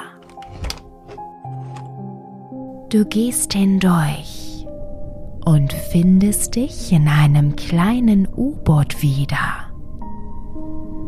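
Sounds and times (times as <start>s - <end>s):
door opening clicks: 0.0s - 1.9s
door handle pressed down clunking: 0.2s - 1.9s
speech: 2.9s - 4.4s, 5.5s - 9.2s.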